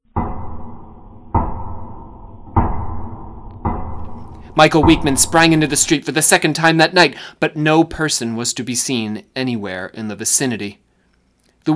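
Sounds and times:
rapping knock on a door: 0:00.1 - 0:05.9
speech: 0:04.6 - 0:10.8.

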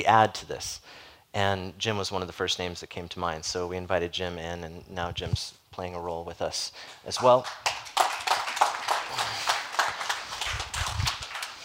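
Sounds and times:
speech: 0:00.0 - 0:07.7
applause: 0:06.8 - 0:11.6.

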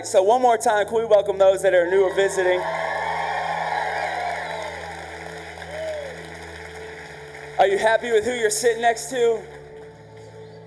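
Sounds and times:
speech: 0:00.0 - 0:03.0, 0:07.6 - 0:09.6
scattered cheers and a rising whoop: 0:01.9 - 0:06.3
audience applauding: 0:02.4 - 0:10.6.

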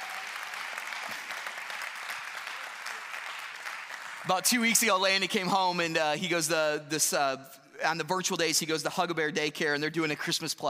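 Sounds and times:
steady applause from a group of people: 0:00.0 - 0:04.5
speech: 0:04.2 - 0:10.6.

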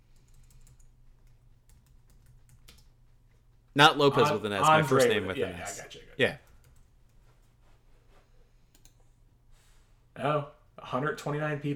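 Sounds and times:
typing on a computer keyboard: 0:00.1 - 0:03.0
speech: 0:03.8 - 0:06.4, 0:10.2 - 0:11.7.

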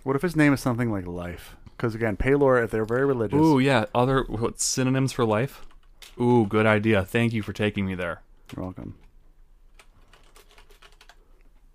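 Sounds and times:
speech: 0:00.0 - 0:09.0
typing on a computer keyboard: 0:05.5 - 0:07.7, 0:08.4 - 0:11.6.

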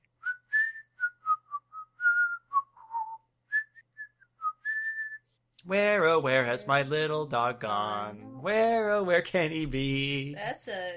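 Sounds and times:
person whistling a melody: 0:00.2 - 0:05.3
speech: 0:05.7 - 0:10.9.

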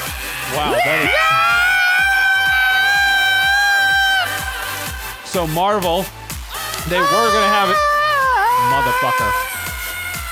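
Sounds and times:
crowd screaming: 0:00.2 - 0:05.0, 0:06.9 - 0:09.9
speech: 0:00.5 - 0:01.2, 0:05.4 - 0:06.2, 0:06.8 - 0:07.9, 0:08.6 - 0:09.5.

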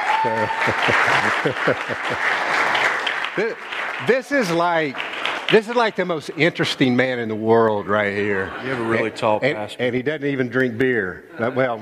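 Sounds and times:
audience applause: 0:00.0 - 0:06.6
speech: 0:00.2 - 0:02.6, 0:03.4 - 0:11.7
laughter: 0:00.2 - 0:03.6, 0:08.0 - 0:09.8.

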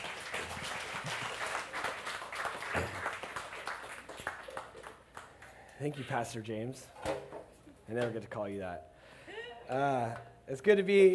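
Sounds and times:
crowd applauding: 0:00.0 - 0:05.6
speech: 0:05.8 - 0:07.3, 0:07.9 - 0:08.9, 0:09.7 - 0:11.1.

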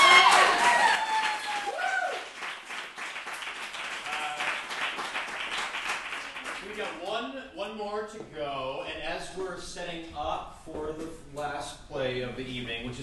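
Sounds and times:
whoops and cheers: 0:00.0 - 0:02.4
audience applause: 0:00.0 - 0:06.9
speech: 0:07.7 - 0:13.0.

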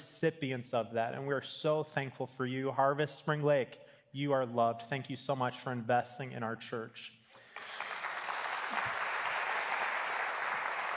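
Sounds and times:
speech: 0:00.2 - 0:07.8
audience clapping: 0:07.4 - 0:10.9.

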